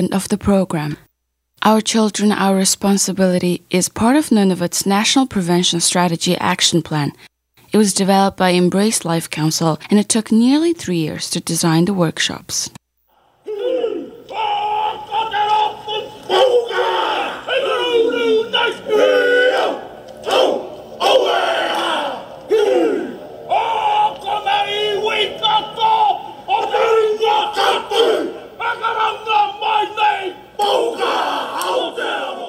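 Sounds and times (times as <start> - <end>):
speech: 0.0 - 12.8
haka tribute by a biker gang in New Zealand: 13.1 - 32.4.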